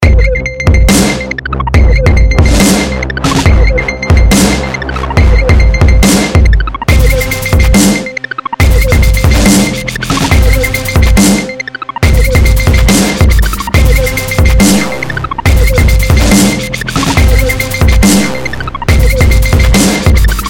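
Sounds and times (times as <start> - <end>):
dubstep music: 0.0 - 20.4.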